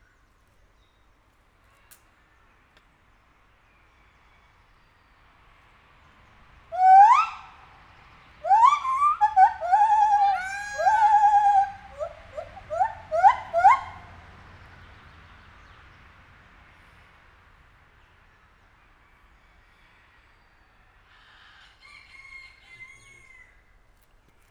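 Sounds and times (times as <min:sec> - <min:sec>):
captive white-handed gibbon hooting in a zoo: 0:06.8 - 0:07.6, 0:08.4 - 0:14.1.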